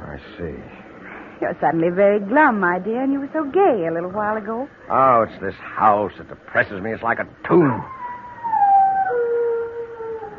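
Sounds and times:
speech: 0:00.2 - 0:00.8, 0:01.4 - 0:08.0
dog howling: 0:07.8 - 0:10.3.

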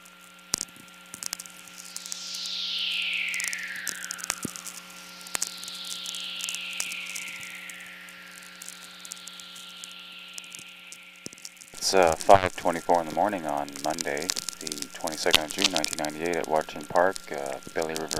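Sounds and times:
sharp crackling clicks: 0:00.0 - 0:18.1
steady electrical hum: 0:00.0 - 0:18.1
soft hissy radio whistlers, natural VLF emissions: 0:01.3 - 0:18.1
speech: 0:11.9 - 0:18.1.

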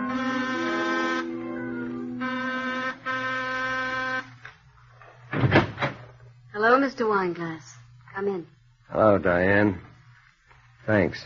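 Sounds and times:
apartment doorbell buzzing in harsh electric bursts: 0:00.0 - 0:04.5
speech: 0:06.6 - 0:09.9, 0:10.9 - 0:11.2.

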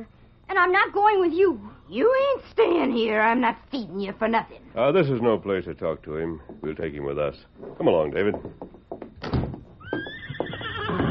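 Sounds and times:
speech: 0:00.0 - 0:09.3
dull thuds: 0:07.6 - 0:10.6
horse Silver whinnying: 0:09.8 - 0:11.0.

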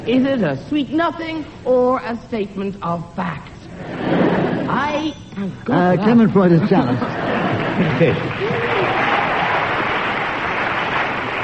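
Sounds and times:
speech: 0:00.0 - 0:08.8
laughter: 0:03.8 - 0:04.8, 0:06.1 - 0:09.9
audience applause: 0:07.1 - 0:11.4.

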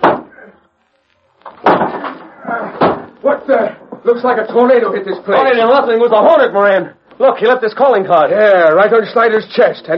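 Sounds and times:
door being smashed open: 0:01.5 - 0:03.1
speech: 0:03.2 - 0:09.9.

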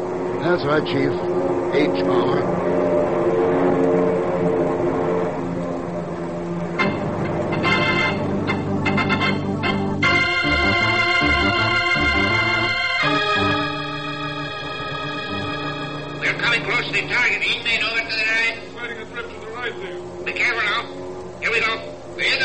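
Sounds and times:
airplanes droning overhead: 0:00.0 - 0:22.4
speech: 0:00.4 - 0:02.9.

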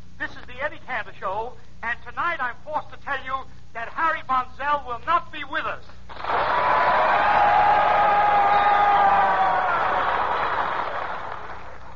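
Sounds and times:
speech: 0:00.6 - 0:07.8
studio audience applauding and cheering: 0:06.1 - 0:11.9.

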